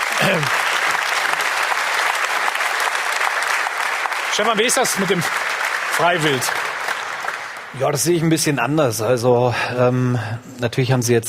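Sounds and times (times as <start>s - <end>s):
applause from a room full of people: 0.0s - 8.5s
speech: 0.2s - 0.6s, 4.4s - 6.7s, 7.7s - 11.2s.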